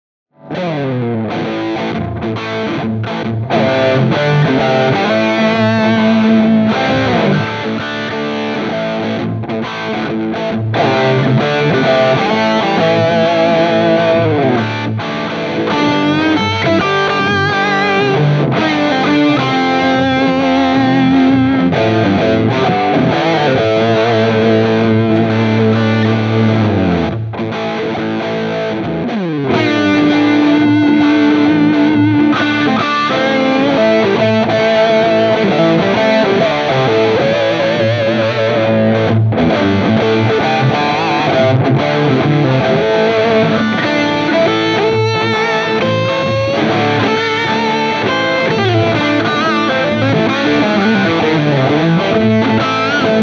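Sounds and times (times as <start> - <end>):
Les Paul high-gain electric guitar through tube amps: 0.3 - 53.2.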